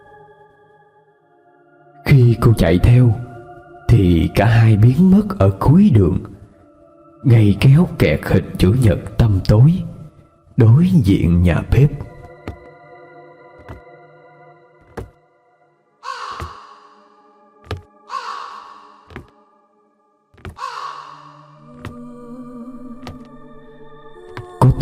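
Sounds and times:
speech: 2.2 - 3.3, 3.9 - 6.4, 7.2 - 9.9, 10.6 - 12.0
crows cawing outside: 16.0 - 19.4, 20.4 - 21.6.

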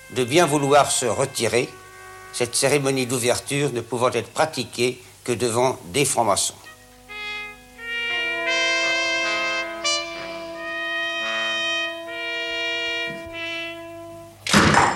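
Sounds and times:
sustained organ-like chords: 0.0 - 14.9
speech: 0.1 - 6.7
door slamming shut: 14.4 - 14.9.

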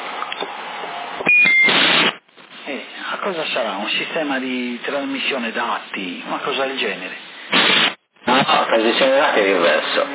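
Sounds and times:
loud burst of radio static: 1.7 - 2.8, 7.5 - 10.1
steady CB radio hiss: 1.7 - 3.3, 7.0 - 10.1
speech: 3.3 - 7.2, 8.5 - 10.1.

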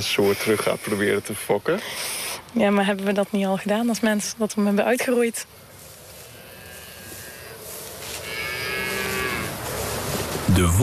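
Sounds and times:
speech: 0.0 - 5.6, 10.6 - 10.8
Tauros bull mooing: 6.2 - 9.6.

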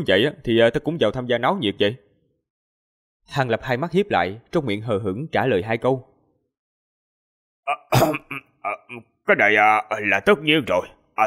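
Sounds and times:
speech: 0.0 - 2.0, 3.3 - 6.1, 7.7 - 11.2
light cough: 7.7 - 9.0.

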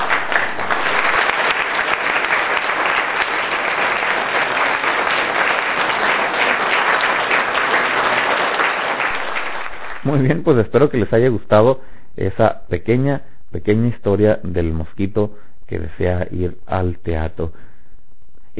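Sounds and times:
crowd applause: 0.0 - 10.5
speech: 10.2 - 17.7.

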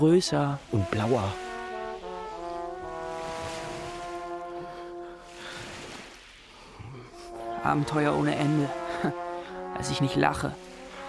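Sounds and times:
speech: 0.0 - 1.4, 7.6 - 9.2, 9.8 - 10.6
horn-like tonal drone: 0.0 - 5.7, 6.9 - 11.0
sea waves and surf: 0.0 - 11.0.

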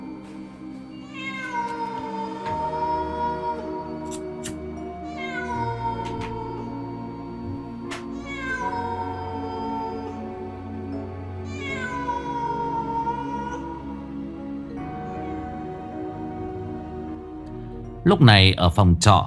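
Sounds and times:
cat meowing: 1.0 - 3.6, 4.4 - 6.7, 8.0 - 10.2, 11.5 - 13.8, 14.9 - 15.8
speech: 18.1 - 19.2.

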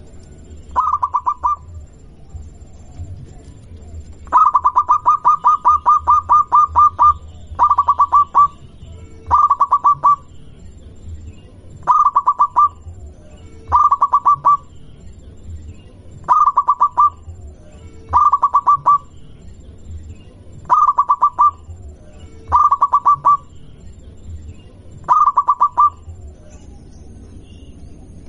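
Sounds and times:
zebra dove cooing song: 0.7 - 8.6, 9.2 - 10.3, 11.8 - 14.7, 16.2 - 19.1, 20.6 - 23.5, 25.0 - 26.5.

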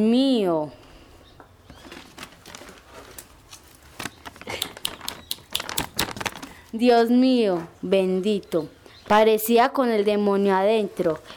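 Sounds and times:
speech: 0.0 - 0.8, 6.7 - 11.3
rustling and rummaging in a pencil case: 1.6 - 6.8
sharp clicks and scissor snips: 4.0 - 6.6.

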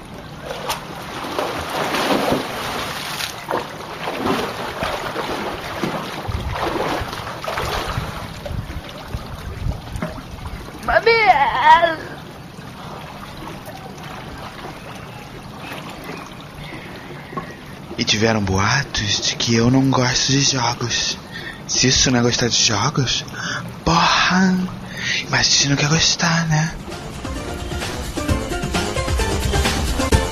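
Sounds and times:
person diving into a very cold home swimming pool: 0.0 - 18.0
wind: 0.0 - 28.0
water lapping in swimming pool: 0.0 - 30.3
speech: 18.2 - 21.2, 21.8 - 23.3, 24.3 - 26.9.

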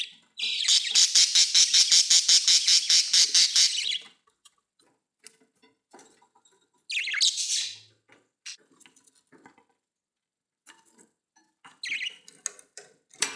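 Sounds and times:
budgerigar squawking: 0.5 - 4.0, 7.0 - 7.8.

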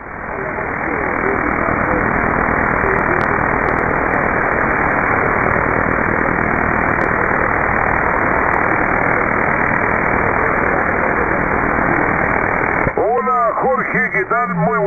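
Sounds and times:
loud hiss of radio static: 0.0 - 14.8
weak low-power QRP amateur radio voice transmission from Cerro Navia: 0.3 - 3.8, 12.9 - 14.8.

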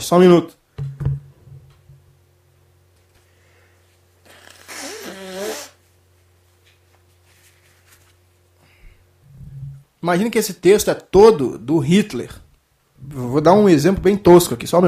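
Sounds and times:
speech: 0.0 - 0.6, 10.0 - 12.4, 13.0 - 14.8
faint steady hum: 0.0 - 14.8
person blowing nose: 4.2 - 5.8.

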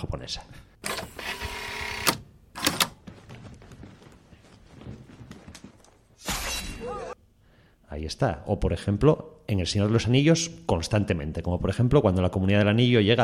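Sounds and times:
speech: 0.0 - 0.7, 7.9 - 13.2
sword being drawn from its sheath, film sound effect: 6.2 - 6.8.

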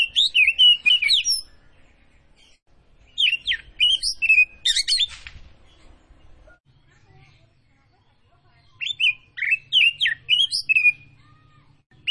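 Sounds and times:
Oriental magpie-robin of the Tretes form singing vigorously with whistled phrases: 0.0 - 1.6, 3.2 - 5.2, 6.4 - 12.0.

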